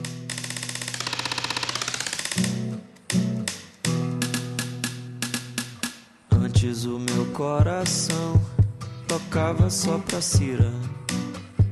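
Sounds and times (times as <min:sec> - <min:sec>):
hand rapping against the side of a guitar, typewriter-like rhythm: 0:03.1 - 0:11.7
speech: 0:06.7 - 0:08.5, 0:09.3 - 0:11.0.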